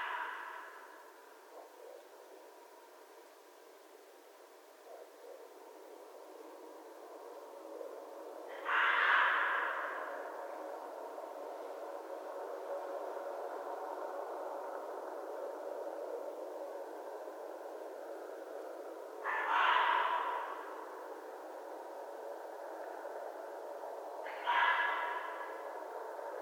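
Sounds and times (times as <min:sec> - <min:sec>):
background hiss: 0:00.0 - 0:26.4
red fox rasping call: 0:08.5 - 0:10.4, 0:19.2 - 0:21.0, 0:24.2 - 0:25.7.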